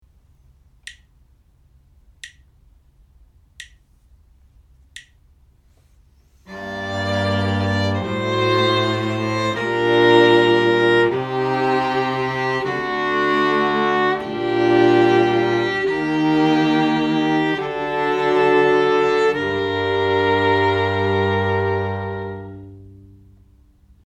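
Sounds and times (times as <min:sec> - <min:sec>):
string quartet playing: 0:06.5 - 0:23.4.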